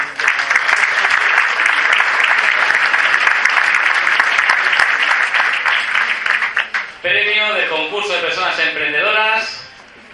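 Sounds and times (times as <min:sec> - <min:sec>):
crowd applauding: 0:00.0 - 0:07.0
speech: 0:07.0 - 0:09.6.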